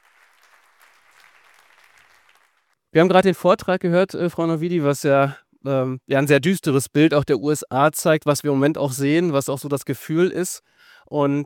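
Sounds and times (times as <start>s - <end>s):
audience applause: 0.0s - 2.8s
speech: 2.9s - 11.4s.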